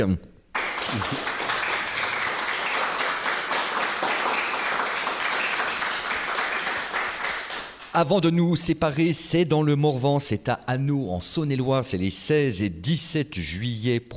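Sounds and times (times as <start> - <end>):
speech: 0.0 - 0.3, 0.9 - 1.4, 8.0 - 14.1
crowd applauding: 0.5 - 7.9.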